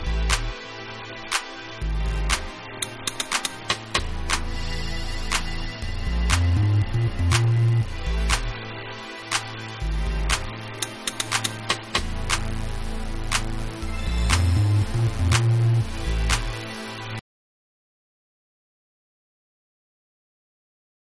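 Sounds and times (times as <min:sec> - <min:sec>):
instrumental dub music: 0:00.0 - 0:00.6, 0:01.8 - 0:08.7, 0:09.3 - 0:17.2.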